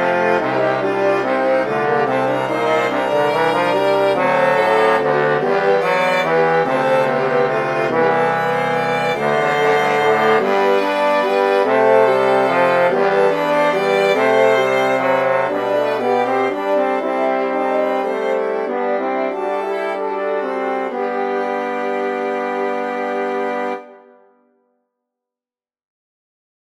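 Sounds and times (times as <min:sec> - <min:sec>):
Mixolydian fugue: 0:00.0 - 0:24.4.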